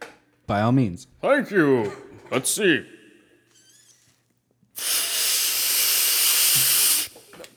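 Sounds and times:
speech: 0.5s - 3.0s
inhaling hiss smoking a whole bowl of Superman OG cannabis in one hit: 4.8s - 7.5s.

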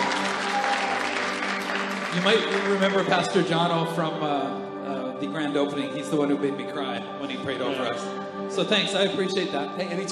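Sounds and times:
audience clapping: 0.0s - 3.8s
speech: 2.1s - 10.0s.

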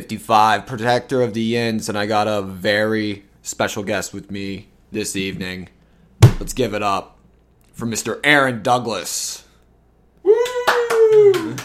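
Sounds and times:
speech: 0.0s - 5.8s, 6.4s - 7.2s, 7.8s - 9.4s, 11.2s - 11.6s
person whooping: 10.2s - 11.6s
person clapping: 10.4s - 11.6s.

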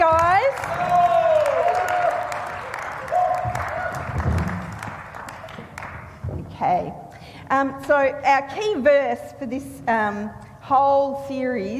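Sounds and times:
audience cheering: 0.0s - 5.9s
speech: 7.9s - 11.7s.

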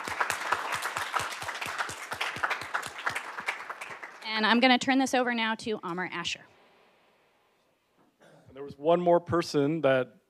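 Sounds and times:
round of applause: 0.0s - 4.4s
speech: 4.4s - 6.5s, 8.7s - 10.2s.

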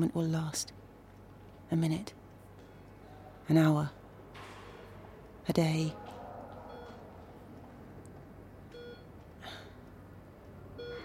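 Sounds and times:
speech: 0.0s - 0.8s, 1.7s - 2.2s, 3.5s - 4.0s, 5.5s - 6.0s
heart monitor beeping: 6.0s - 7.7s, 8.6s - 9.5s, 10.7s - 11.0s.

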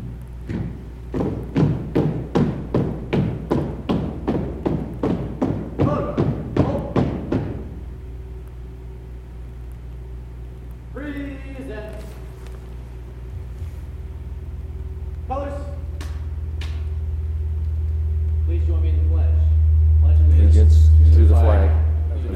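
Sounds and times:
color guard marching footsteps at a school board meeting: 0.0s - 7.9s, 11.7s - 17.0s
low hum: 0.0s - 22.3s.

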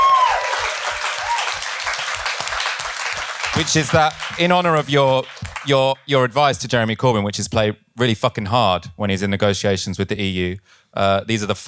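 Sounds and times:
audience applause: 0.0s - 5.9s
speech: 3.6s - 11.6s.

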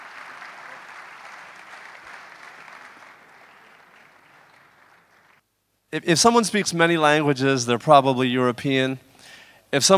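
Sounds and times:
audience applause: 0.0s - 5.4s
speech: 5.9s - 9.1s, 9.7s - 9.9s.

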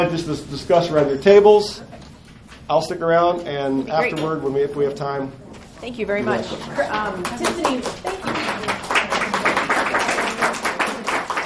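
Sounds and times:
speech: 0.0s - 2.0s, 2.7s - 8.4s
women's group audience clapping: 7.0s - 11.4s.

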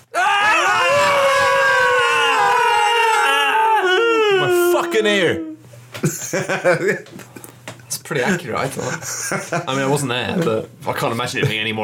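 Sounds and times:
people screaming imitating a dog in pain: 0.0s - 5.6s
speech: 5.0s - 11.8s
laughter: 6.0s - 7.4s, 8.8s - 10.0s.

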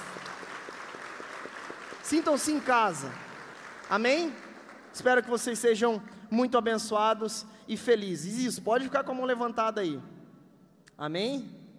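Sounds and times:
audience applause: 0.0s - 5.2s
speech: 2.1s - 3.2s, 3.9s - 4.4s, 5.0s - 10.1s, 11.0s - 11.6s.

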